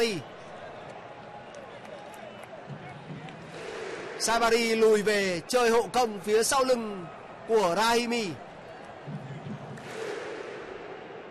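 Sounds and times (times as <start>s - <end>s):
speech: 0.0s - 0.3s, 4.2s - 9.2s
football fans' thunder clap: 0.8s - 6.3s, 8.8s - 11.3s.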